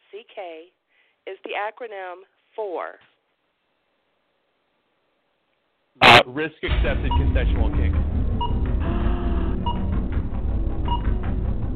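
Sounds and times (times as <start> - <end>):
speech: 0.2 - 3.1, 6.2 - 8.0
low rumbling background: 6.7 - 11.7
timer beeping: 6.9 - 7.6, 8.4 - 10.1, 10.8 - 11.3.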